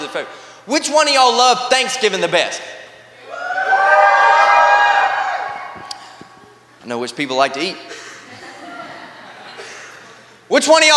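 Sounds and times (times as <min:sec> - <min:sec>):
speech: 0:00.1 - 0:02.8, 0:06.8 - 0:08.0, 0:10.5 - 0:10.9
crowd screaming and shouting: 0:03.2 - 0:06.2
laughter: 0:08.0 - 0:10.4.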